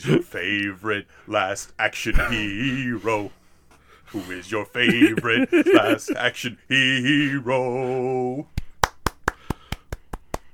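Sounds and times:
speech: 0:00.0 - 0:03.4, 0:04.1 - 0:08.6
laughter: 0:04.6 - 0:06.4
person clapping hands: 0:08.6 - 0:10.5.

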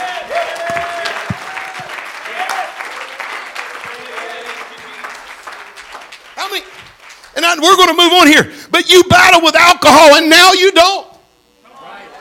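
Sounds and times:
audience clapping: 0:00.0 - 0:08.0
speech: 0:07.5 - 0:11.1.

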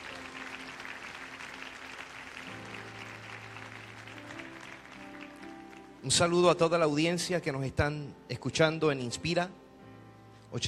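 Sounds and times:
audience applauding: 0:00.0 - 0:06.3
speech: 0:06.0 - 0:09.6.

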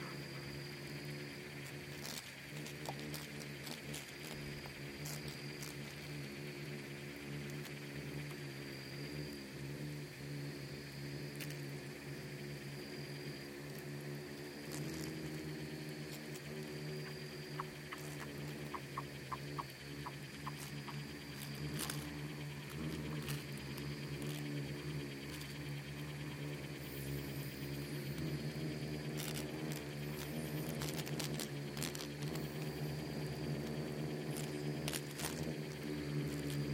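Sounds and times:
swarming insects buzzing: 0:00.0 - 0:36.7
crisp clicks: 0:01.6 - 0:06.1, 0:16.1 - 0:26.6, 0:29.1 - 0:36.7.

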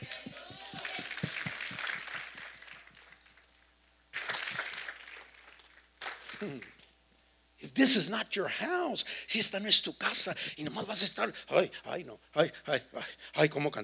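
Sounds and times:
single person clapping hands: 0:00.0 - 0:03.5, 0:04.2 - 0:06.8
speech: 0:06.4 - 0:06.8, 0:07.6 - 0:13.8.

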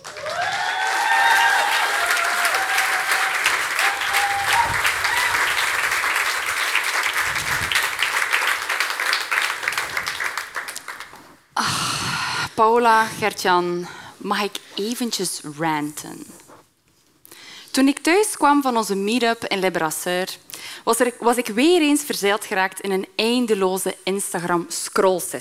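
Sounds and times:
audience applause: 0:00.0 - 0:11.4
speech: 0:12.6 - 0:16.4, 0:17.8 - 0:25.4.

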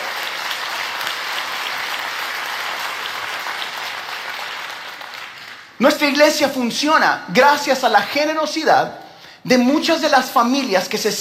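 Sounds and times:
audience applause: 0:00.0 - 0:05.8
speech: 0:05.8 - 0:11.2.

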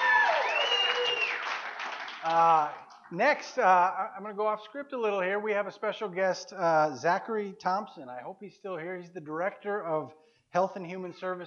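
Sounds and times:
small crowd clapping and cheering in the front row: 0:00.0 - 0:02.9
speech: 0:02.2 - 0:11.4.

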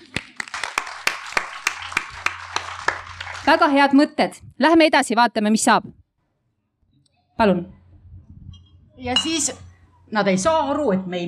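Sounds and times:
sparse handclaps from a small audience: 0:00.0 - 0:03.8
speech: 0:03.5 - 0:06.0, 0:07.4 - 0:07.8, 0:09.0 - 0:11.2.

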